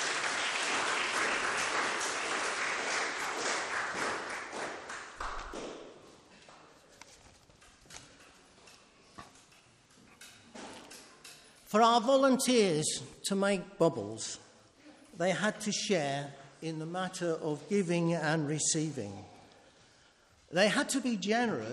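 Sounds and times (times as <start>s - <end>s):
audience applause: 0.0s - 5.8s
speech: 11.7s - 14.4s, 15.2s - 19.3s, 20.5s - 21.7s.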